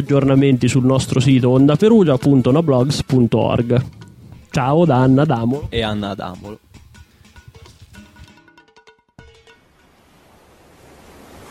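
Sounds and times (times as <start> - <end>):
speech: 0.0 - 6.6
tonal ticking musical passage: 0.0 - 10.0
ocean surf breaking on shore: 9.5 - 11.4.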